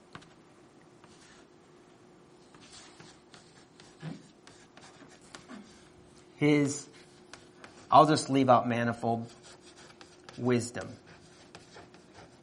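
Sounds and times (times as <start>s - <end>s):
writing on a board during a church sermon: 1.0s - 1.5s, 2.4s - 8.3s, 8.9s - 12.4s
speech: 6.4s - 6.9s, 7.9s - 9.4s, 10.4s - 11.0s.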